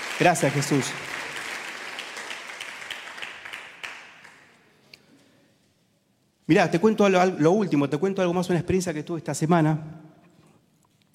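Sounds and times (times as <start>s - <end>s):
crowd applauding: 0.0s - 4.6s
speech: 0.2s - 1.2s, 6.5s - 10.0s.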